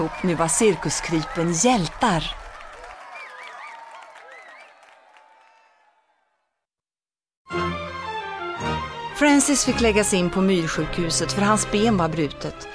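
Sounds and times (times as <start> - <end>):
speech: 0.0 - 2.4, 9.2 - 12.7
applause: 0.0 - 6.3
cheering: 0.0 - 6.6.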